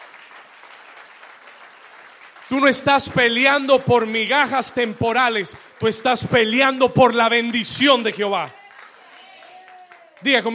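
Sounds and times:
loud applause: 0:00.0 - 0:10.5
speech: 0:02.5 - 0:08.6, 0:10.2 - 0:10.5.

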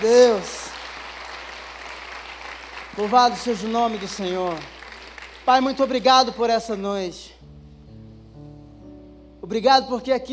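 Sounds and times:
speech: 0:00.0 - 0:00.6, 0:03.0 - 0:04.8, 0:05.5 - 0:07.3, 0:09.5 - 0:10.3
audience applause in church: 0:00.0 - 0:05.9.

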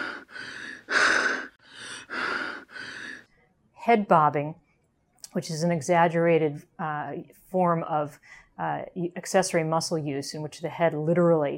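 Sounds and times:
child gasping with increased breathing effort: 0:00.0 - 0:03.2
speech: 0:03.9 - 0:04.6, 0:05.3 - 0:11.5.

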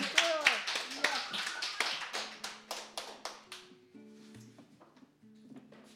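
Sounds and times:
applause: 0:00.0 - 0:03.8.

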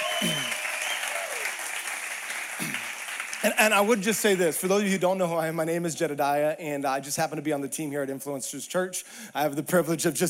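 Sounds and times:
church congregation clapping for its online audience: 0:00.0 - 0:05.0
speech: 0:00.2 - 0:00.5, 0:03.4 - 0:10.2.

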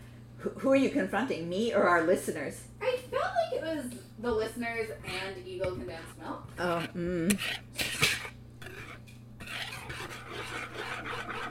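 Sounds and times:
speech: 0:00.4 - 0:02.8, 0:03.6 - 0:07.9
metal whisk scraping in a bowl: 0:04.9 - 0:11.4.

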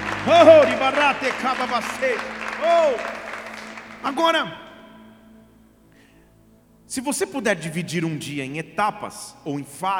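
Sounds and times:
audience applause: 0:00.0 - 0:04.4
speech: 0:00.2 - 0:03.3, 0:04.0 - 0:04.6, 0:06.9 - 0:09.9.

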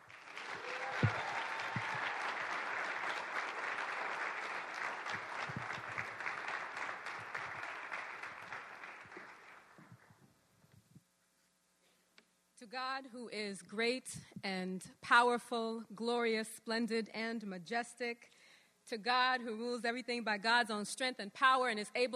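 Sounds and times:
audience at an ENC gathering applauding: 0:00.0 - 0:10.1
speech: 0:12.8 - 0:22.1.

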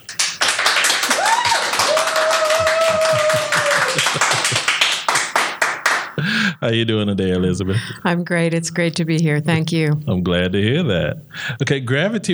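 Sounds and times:
audience applause welcoming a poet at a live Sacramento interview event: 0:00.0 - 0:06.6
laughter: 0:00.0 - 0:11.8
speech: 0:06.6 - 0:12.3.

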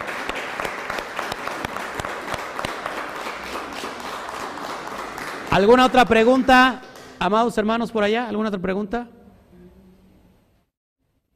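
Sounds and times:
crowd applauding: 0:00.0 - 0:07.2
speech: 0:05.6 - 0:09.2.

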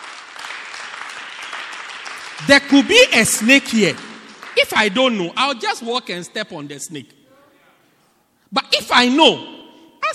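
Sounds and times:
audience clapping hands: 0:00.0 - 0:06.1
speech: 0:02.4 - 0:07.2, 0:08.7 - 0:09.5.

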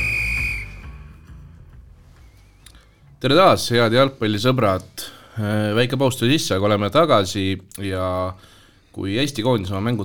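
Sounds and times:
referee's final whistle in football: 0:00.0 - 0:01.0
speech: 0:03.2 - 0:10.0.

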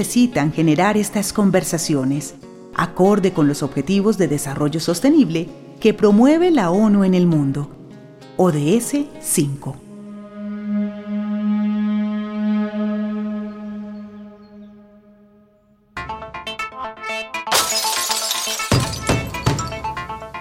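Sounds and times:
speech: 0:00.0 - 0:07.8, 0:08.4 - 0:09.8
sustained humming tone: 0:09.8 - 0:15.8
glass shattering: 0:17.5 - 0:20.0.

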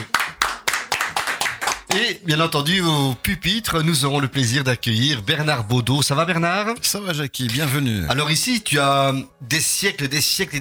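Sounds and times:
audience clapping: 0:00.0 - 0:02.1
speech: 0:02.0 - 0:10.5.

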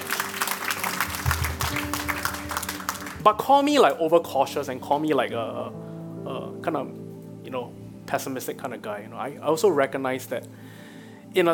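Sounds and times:
crowd clapping: 0:00.0 - 0:04.0
speech: 0:03.2 - 0:10.7, 0:11.3 - 0:11.5.

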